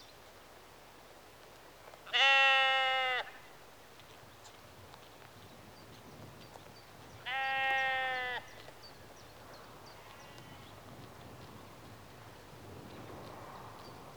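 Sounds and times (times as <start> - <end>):
sheep bleating in a rural exterior atmosphere in early evening: 2.1 - 3.3, 7.3 - 8.4.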